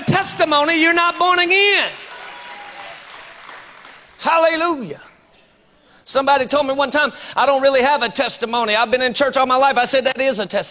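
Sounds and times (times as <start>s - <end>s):
speech: 0.2s - 2.0s, 4.2s - 5.1s, 6.1s - 10.7s
crowd clapping: 1.8s - 4.4s.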